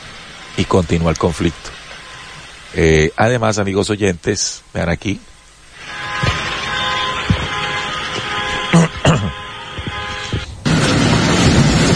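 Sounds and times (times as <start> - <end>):
air raid sirens: 0.0 - 2.8, 5.4 - 11.9
speech: 0.6 - 1.8, 2.7 - 5.3.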